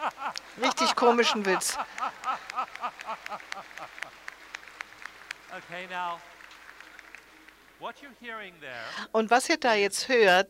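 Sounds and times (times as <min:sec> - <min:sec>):
laughter: 0:00.0 - 0:04.3
audience clapping out of phase: 0:00.0 - 0:08.7
speech: 0:00.4 - 0:02.2, 0:05.7 - 0:06.4, 0:07.8 - 0:10.4.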